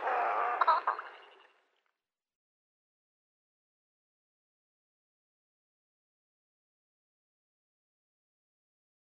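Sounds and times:
black heron call: 0.0s - 1.3s.

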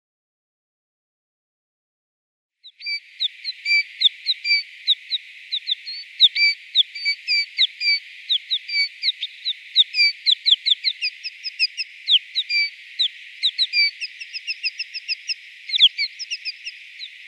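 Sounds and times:
snowfinch song: 2.6s - 17.2s.

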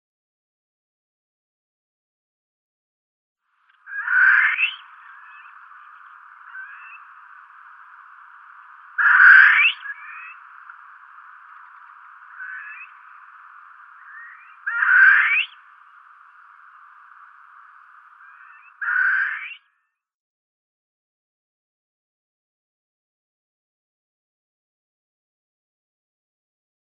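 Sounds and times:
Barbary Partridge male display: 3.9s - 16.5s, 18.2s - 19.6s.

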